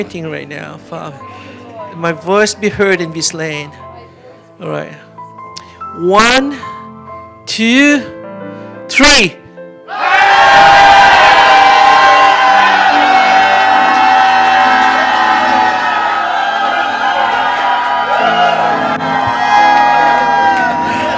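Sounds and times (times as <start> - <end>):
speech: 0.0 - 4.0, 4.6 - 5.1, 5.9 - 6.7, 7.5 - 8.2, 8.9 - 9.4
crowd shouting and cheering: 9.9 - 21.1.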